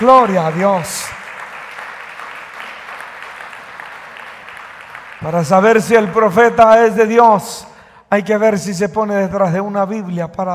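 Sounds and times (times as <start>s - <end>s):
speech: 0.0s - 1.2s, 5.2s - 10.5s
audience applause: 0.0s - 6.3s.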